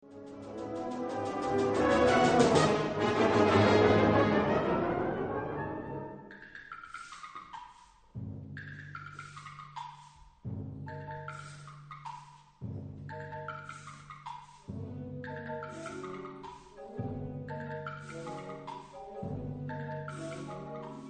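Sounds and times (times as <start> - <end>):
brass instruments: 0.0 - 6.3.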